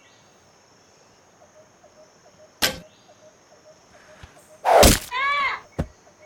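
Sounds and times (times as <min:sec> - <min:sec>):
gunshots at a target during target practice: 0:04.7 - 0:05.1.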